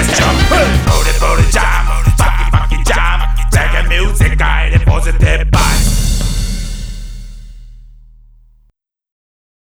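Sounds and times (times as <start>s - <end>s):
reggae swing mix: 0.0s - 6.9s.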